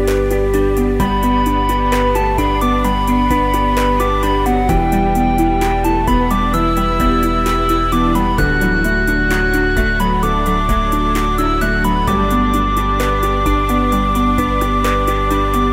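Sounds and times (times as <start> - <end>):
reel spinning: 0.0 - 15.7.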